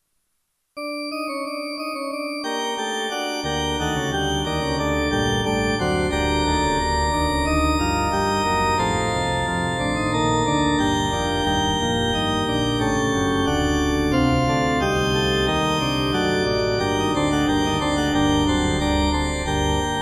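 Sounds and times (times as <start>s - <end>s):
gothic organ theme: 0.8s - 19.9s.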